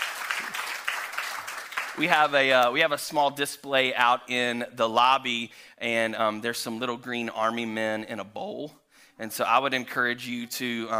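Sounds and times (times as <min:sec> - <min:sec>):
audience applause: 0:00.0 - 0:02.3
speech: 0:02.0 - 0:10.9.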